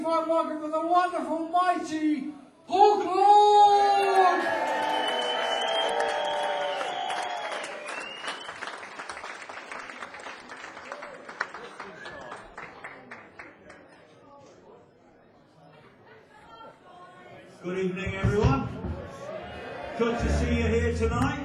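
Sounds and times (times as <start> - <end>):
speech: 0.0 - 4.6, 17.7 - 18.8, 20.0 - 21.4
audience applause in a club welcoming a performer: 4.0 - 13.9
crowd chatter in a club: 11.6 - 21.4.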